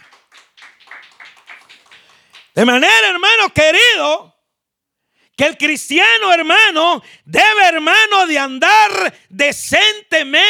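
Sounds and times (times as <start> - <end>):
audience clapping hands in rhythm: 0.0 - 3.4
speech: 2.6 - 4.3, 5.4 - 10.4.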